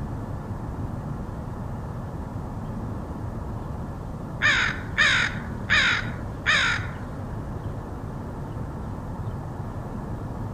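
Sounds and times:
low steady rumble: 0.0 - 10.5
crow giving loud harsh caws: 4.4 - 7.0.

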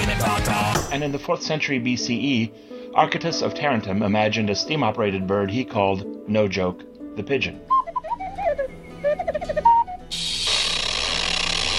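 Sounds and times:
speech: 0.9 - 7.8
robot warbling electronic chirps and beeps: 7.7 - 10.4
robot loud sustained hissing wheeze: 10.1 - 11.7.

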